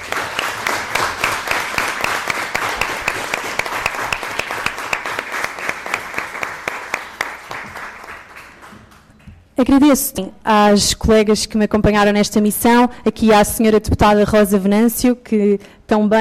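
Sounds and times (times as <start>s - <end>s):
audience applause: 0.0s - 9.1s
speech: 9.6s - 16.1s.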